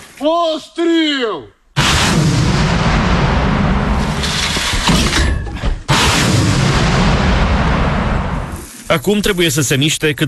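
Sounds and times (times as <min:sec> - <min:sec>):
speech: 0:00.2 - 0:01.5, 0:08.9 - 0:10.2
artillery guns firing from a new position closer to the front line: 0:01.7 - 0:08.7.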